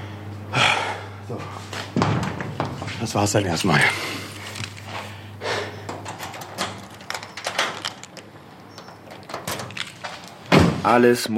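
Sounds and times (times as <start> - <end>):
speech: 1.3 - 1.8, 3.0 - 4.2, 10.8 - 11.3
door closing: 2.0 - 11.0.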